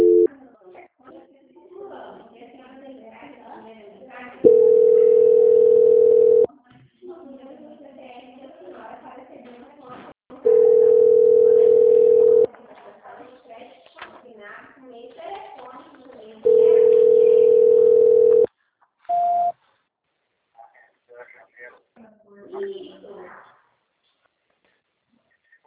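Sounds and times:
telephone beeps during a call transfer: 0:00.0 - 0:00.3, 0:04.5 - 0:06.5, 0:10.5 - 0:12.5, 0:16.4 - 0:18.5, 0:19.1 - 0:19.5.

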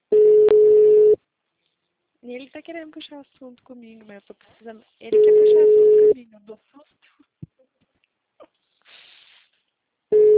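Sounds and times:
phone beeping: 0:00.1 - 0:01.2, 0:05.1 - 0:06.2, 0:10.1 - 0:10.3
speech: 0:02.3 - 0:07.2.

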